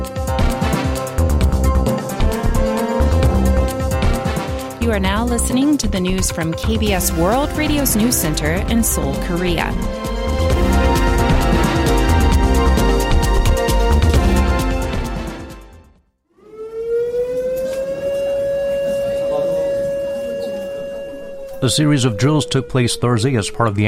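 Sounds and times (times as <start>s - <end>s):
civil defense air raid siren: 0.0s - 15.5s, 16.3s - 23.8s
speech: 5.0s - 10.1s, 21.6s - 23.8s.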